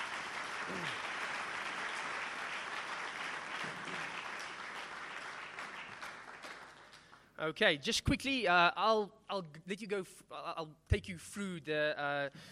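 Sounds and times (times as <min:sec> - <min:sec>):
crowd applause: 0:00.0 - 0:07.2
speech: 0:00.7 - 0:01.1, 0:07.4 - 0:12.5.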